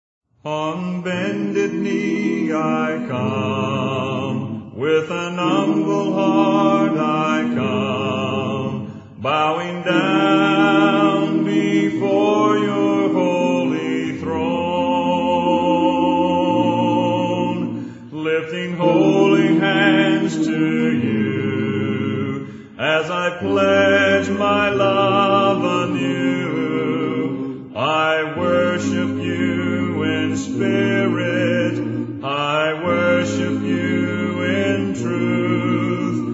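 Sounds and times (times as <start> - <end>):
a cappella hymn: 0.4 - 36.3.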